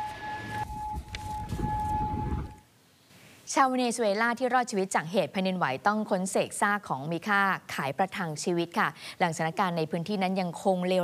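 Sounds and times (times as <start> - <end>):
air raid warning siren: 0.0 - 2.7
speech: 3.5 - 11.0.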